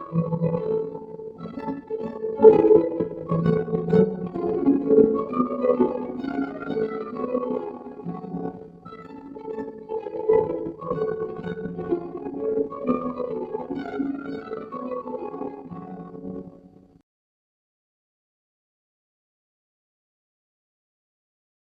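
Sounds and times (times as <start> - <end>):
underwater music: 0.0 - 17.0.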